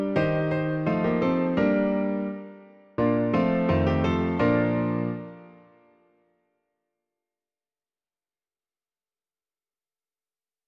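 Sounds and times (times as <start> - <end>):
piano: 0.0 - 6.5.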